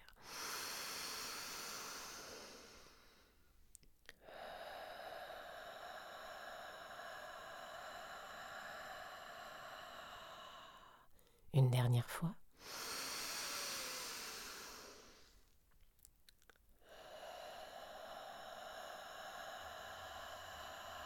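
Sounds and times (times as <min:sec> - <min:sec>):
deep inhalation during a guided breathing exercise: 0:00.0 - 0:03.5, 0:04.1 - 0:11.4, 0:12.6 - 0:15.5, 0:16.8 - 0:21.0.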